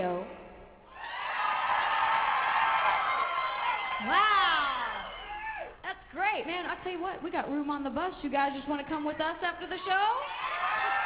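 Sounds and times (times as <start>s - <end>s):
audience yelling loudly: 0.9s - 5.8s, 9.8s - 11.0s
speech: 6.8s - 10.4s.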